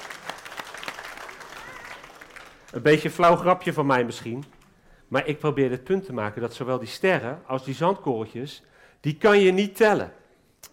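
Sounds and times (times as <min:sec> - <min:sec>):
small group applauding: 0:00.0 - 0:04.8
speech: 0:02.7 - 0:10.2.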